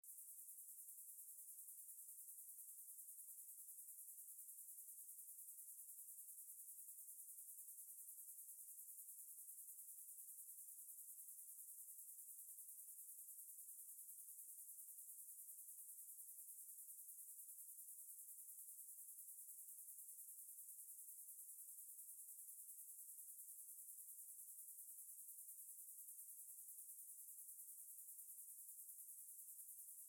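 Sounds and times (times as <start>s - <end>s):
crickets: 0.0s - 30.0s.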